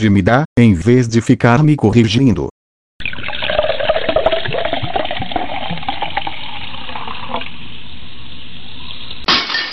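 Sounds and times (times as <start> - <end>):
speech: 0.0 - 2.5
cola pouring and fizzing into a glass: 3.0 - 7.6.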